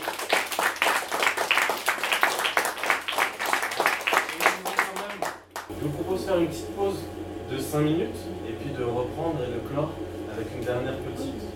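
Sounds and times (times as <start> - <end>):
audience applause: 0.0 - 5.7
speech: 5.8 - 11.5.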